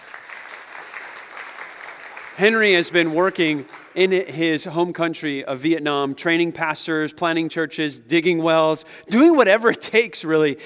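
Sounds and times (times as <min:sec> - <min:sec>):
audience applause: 0:00.0 - 0:04.3
speech: 0:02.4 - 0:10.6.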